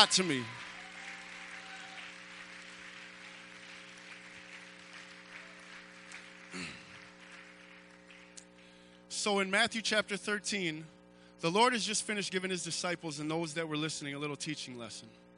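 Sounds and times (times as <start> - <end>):
speech: 0.0 - 0.7, 9.2 - 15.3
audience hand clapping: 0.0 - 8.8.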